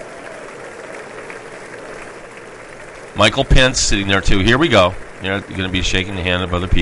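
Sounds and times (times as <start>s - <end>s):
crowd cheering and applauding at a political event: 0.0s - 4.0s
speech: 3.1s - 6.7s.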